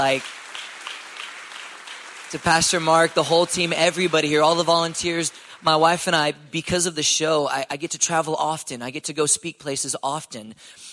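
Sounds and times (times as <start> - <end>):
speech: 0.0 - 0.4, 2.3 - 10.9
crowd applauding: 0.0 - 6.4.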